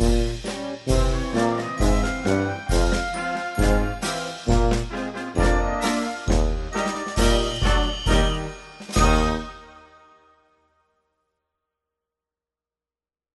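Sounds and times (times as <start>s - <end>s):
chromatic march music: 0.0s - 10.1s.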